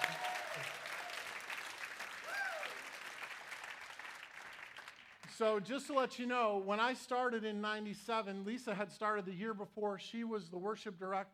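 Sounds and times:
audience applause: 0:00.0 - 0:05.3
speech: 0:05.4 - 0:11.3.

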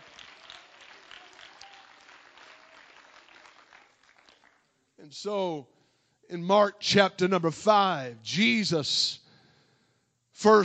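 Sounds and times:
audience clapping: 0:00.0 - 0:04.9
speech: 0:05.0 - 0:09.2, 0:10.4 - 0:10.6.

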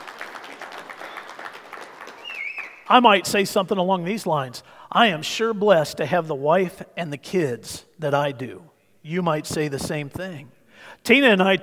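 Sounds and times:
church congregation in Northwest Montana clapping: 0:00.0 - 0:03.3
speech: 0:02.9 - 0:11.6.

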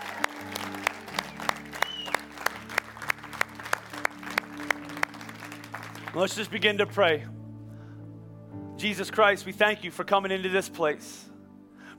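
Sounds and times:
audience applause: 0:00.0 - 0:06.6
speech: 0:06.1 - 0:07.4, 0:08.8 - 0:11.3.

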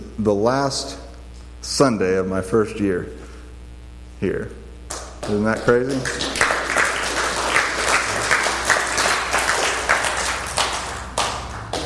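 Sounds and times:
speech: 0:00.2 - 0:01.0, 0:01.6 - 0:03.2, 0:04.2 - 0:04.6, 0:05.3 - 0:06.4
audience slow clap applause: 0:04.9 - 0:11.8.

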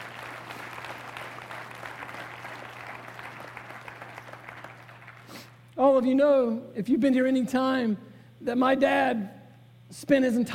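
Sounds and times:
audience applauding: 0:00.0 - 0:05.7
speech: 0:05.8 - 0:10.5.

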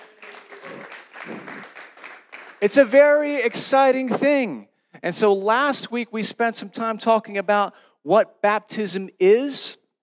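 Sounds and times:
one person clapping: 0:00.0 - 0:02.6
speech: 0:01.3 - 0:01.8, 0:02.6 - 0:09.8.

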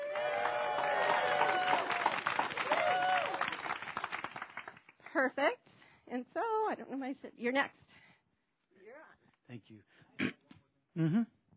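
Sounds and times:
audience screaming and cheering in appreciation: 0:00.0 - 0:03.5
scattered clapping: 0:00.1 - 0:05.1
speech: 0:05.2 - 0:07.9, 0:09.5 - 0:10.3, 0:11.0 - 0:11.4.

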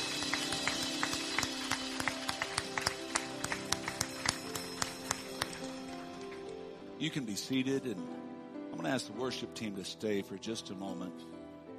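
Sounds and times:
audience clapping hands: 0:00.0 - 0:06.8
speech: 0:07.0 - 0:11.4.

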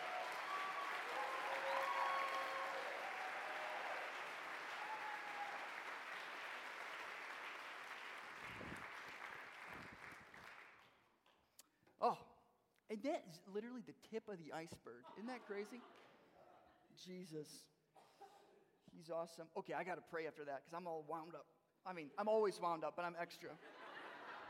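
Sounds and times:
audience applause: 0:00.0 - 0:10.9
speech: 0:12.0 - 0:12.3, 0:12.9 - 0:16.1, 0:17.0 - 0:17.7, 0:19.0 - 0:23.8
laughter: 0:15.0 - 0:16.9, 0:23.6 - 0:24.4.

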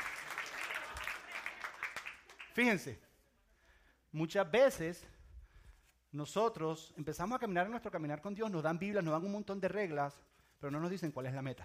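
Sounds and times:
audience applause: 0:00.0 - 0:02.8
speech: 0:02.6 - 0:03.1, 0:04.1 - 0:05.2, 0:06.1 - 0:11.6.

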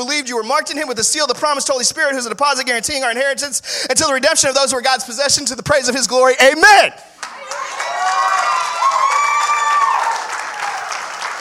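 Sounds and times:
speech: 0:00.0 - 0:07.2
audience clapping: 0:07.2 - 0:11.4
crowd whooping and shouting: 0:07.3 - 0:11.4.

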